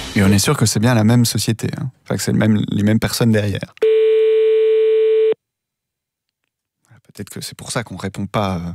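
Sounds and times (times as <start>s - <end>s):
speech: 0.1s - 4.1s, 7.2s - 8.7s
telephone dial tone on a French landline call: 3.8s - 5.3s.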